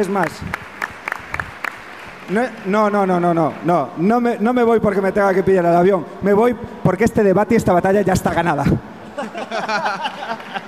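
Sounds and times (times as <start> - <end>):
speech: 0.0 - 0.7, 2.3 - 8.9, 9.7 - 10.5
audience applause: 0.0 - 3.7, 10.2 - 10.6
laughter: 9.0 - 10.6.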